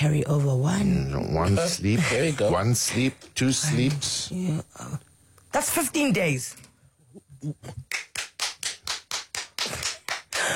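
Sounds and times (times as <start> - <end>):
speech: 0.0 - 6.7, 7.4 - 8.0
single lonely hand clap: 7.9 - 10.5.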